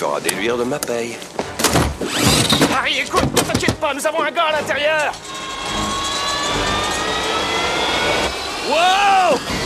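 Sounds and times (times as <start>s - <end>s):
speech: 0.1s - 5.9s, 8.1s - 9.6s
Harrier jet taking off: 5.2s - 9.6s.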